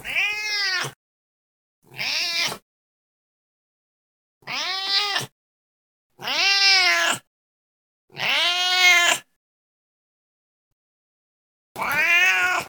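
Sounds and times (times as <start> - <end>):
old cat meowing in strained rising-then-falling cries: 0.0 - 1.0, 1.9 - 2.6, 4.4 - 5.3, 6.2 - 7.3, 8.2 - 9.2, 11.8 - 12.6.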